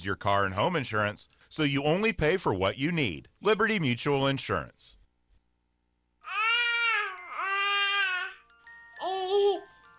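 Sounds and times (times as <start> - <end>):
speech: 0.0 - 5.0
baby babbling: 6.2 - 8.4, 9.0 - 9.7.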